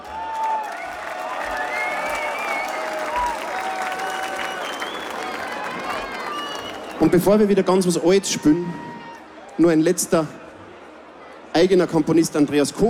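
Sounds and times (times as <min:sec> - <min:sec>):
audience applause after a march: 0:00.0 - 0:07.5
speech: 0:07.0 - 0:08.9, 0:09.6 - 0:10.4, 0:11.6 - 0:12.8.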